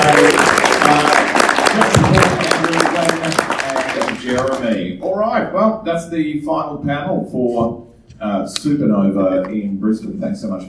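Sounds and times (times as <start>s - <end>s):
audience applause: 0.0s - 4.9s
speech: 5.6s - 10.6s.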